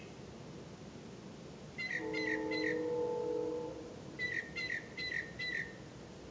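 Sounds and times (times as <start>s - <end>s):
bird whistles and chirps: 1.8s - 2.9s, 4.2s - 5.7s
low humming tone: 2.0s - 4.2s.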